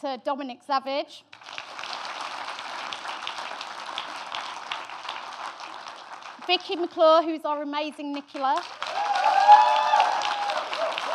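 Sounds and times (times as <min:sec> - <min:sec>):
speech: 0:00.0 - 0:01.7, 0:06.5 - 0:08.8
audience applause: 0:01.4 - 0:06.8, 0:08.6 - 0:11.1.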